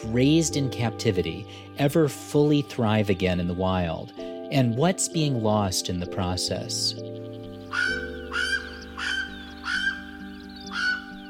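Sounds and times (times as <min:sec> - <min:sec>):
speech: 0:00.0 - 0:07.9
Hawaiian crow alala calls: 0:07.0 - 0:11.2.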